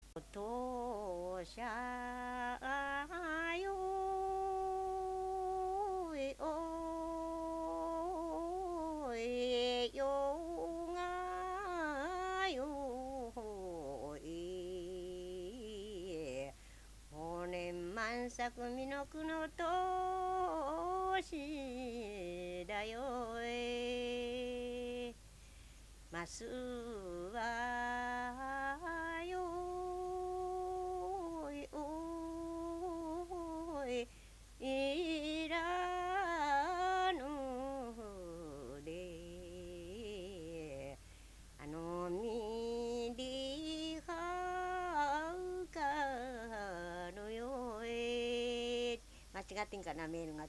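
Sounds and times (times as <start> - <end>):
Japanese minyou folk song: 0.0 - 50.4.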